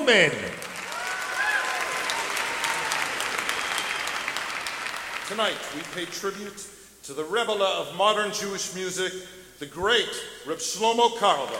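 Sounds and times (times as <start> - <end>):
speech: 0.1 - 0.6, 5.3 - 11.5
audience applause welcoming the master of ceremonies at a tribute concert: 0.3 - 6.2, 11.3 - 11.5.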